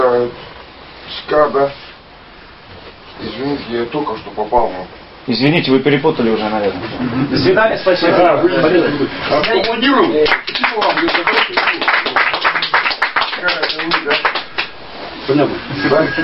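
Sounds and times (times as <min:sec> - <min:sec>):
speech: 0:01.3 - 0:01.8, 0:03.2 - 0:12.0, 0:15.3 - 0:16.2
crowd hand clapping: 0:09.4 - 0:14.8.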